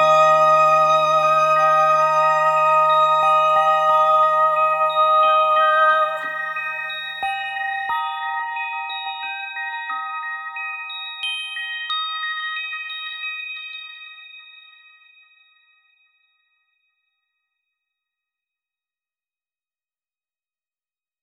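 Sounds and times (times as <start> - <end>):
lullaby: 0.0 - 16.9.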